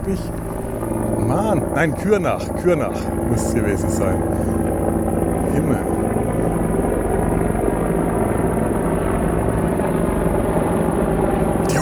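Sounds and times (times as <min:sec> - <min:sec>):
speech: 0:00.0 - 0:00.6, 0:01.3 - 0:04.6, 0:05.6 - 0:06.0
helicopter flying overhead: 0:00.0 - 0:11.8.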